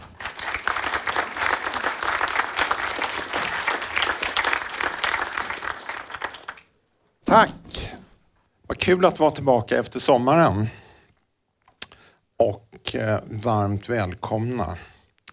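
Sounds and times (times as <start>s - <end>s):
audience applause: 0.0s - 6.8s
speech: 7.3s - 7.8s, 8.8s - 10.8s, 13.0s - 14.9s.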